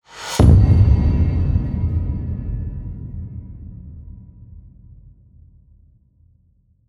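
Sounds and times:
low cinematic hits: 0.4s - 5.0s.

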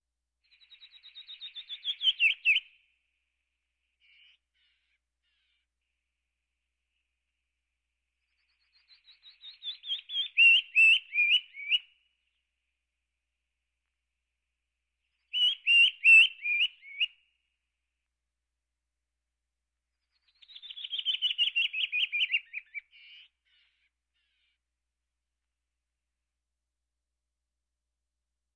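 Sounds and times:
birds: 0.4s - 13.0s, 13.6s - 17.7s, 19.9s - 24.8s.

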